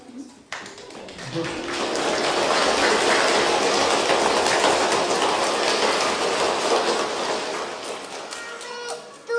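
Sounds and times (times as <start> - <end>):
applause: 0.5 - 9.2.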